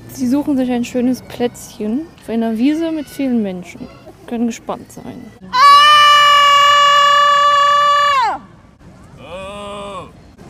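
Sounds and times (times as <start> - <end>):
speech: 0.2 - 5.6
woman screaming loudly on a meadow: 5.5 - 8.4.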